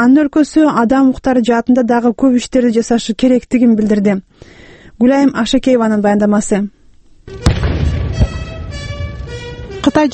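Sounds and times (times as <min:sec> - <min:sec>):
speech: 0:00.0 - 0:07.6, 0:09.8 - 0:10.1
outdoor noise: 0:00.0 - 0:10.1
21-gun salute at the White House welcome ceremony for Hu Jintao: 0:07.3 - 0:09.3.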